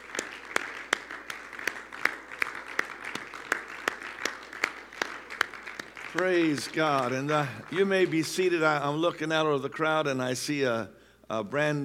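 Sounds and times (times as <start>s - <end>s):
audience clapping hands: 0.0s - 9.2s
speech: 6.2s - 11.8s.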